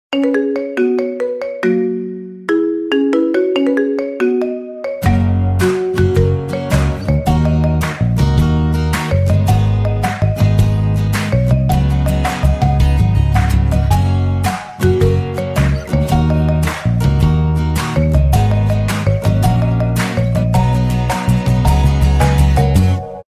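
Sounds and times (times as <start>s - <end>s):
marimba ringtone: 0.1s - 23.2s.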